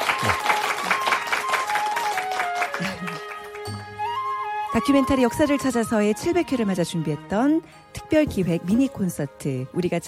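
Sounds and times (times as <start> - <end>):
audience applause: 0.0 - 4.0
speech: 0.2 - 0.5, 4.8 - 10.0
laughter: 2.7 - 3.4.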